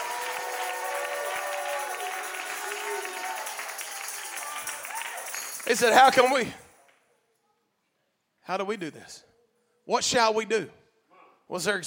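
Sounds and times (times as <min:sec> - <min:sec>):
audience clapping hands: 0:00.0 - 0:07.1
speech: 0:05.7 - 0:06.6, 0:08.5 - 0:09.3, 0:09.9 - 0:10.8, 0:11.5 - 0:11.8.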